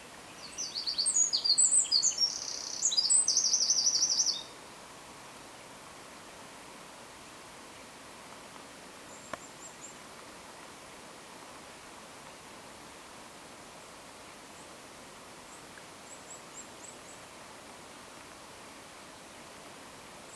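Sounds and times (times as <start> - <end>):
faint background hiss: 0.0 - 20.3
Eurasian wren song with twittering and trill: 0.4 - 4.5.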